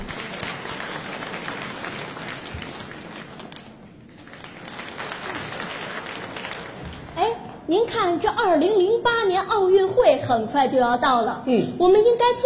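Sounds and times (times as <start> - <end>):
large crowd applauding at a comedy stage show: 0.0 - 7.2
speech: 7.7 - 12.4.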